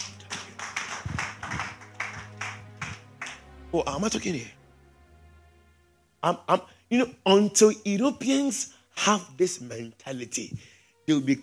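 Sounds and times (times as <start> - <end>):
audience clapping hands: 0.0 - 3.7
speech: 3.7 - 4.6, 6.2 - 11.4.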